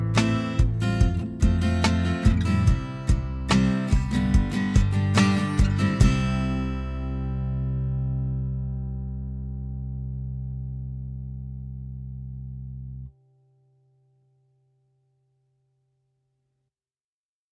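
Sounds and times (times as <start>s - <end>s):
instrumental music: 0.0s - 13.2s.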